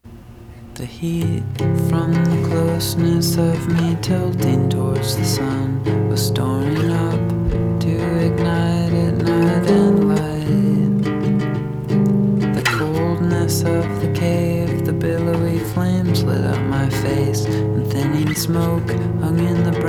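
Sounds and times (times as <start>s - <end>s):
acoustic music: 0.0s - 19.8s.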